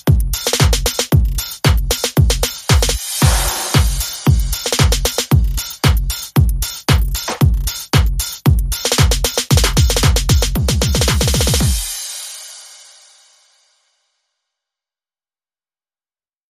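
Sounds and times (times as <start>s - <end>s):
sped up drums: 0.0s - 13.2s.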